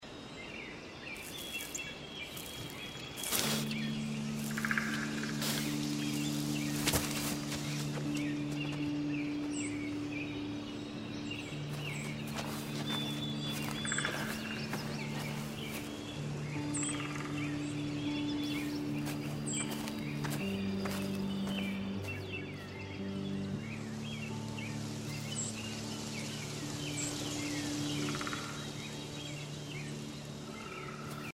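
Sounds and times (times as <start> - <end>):
lighthouse background ambience: 0.0 - 31.3.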